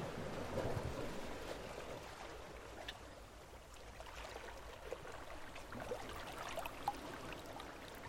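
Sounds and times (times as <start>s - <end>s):
rushing water: 0.1s - 8.0s
small splashy ticks: 2.1s - 8.0s.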